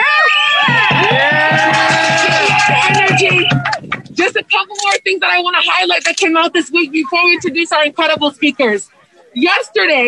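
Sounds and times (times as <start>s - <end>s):
whoops and shouts: 0.0s - 3.8s
crowd cheering and applauding: 0.0s - 4.2s
speech: 5.0s - 10.0s.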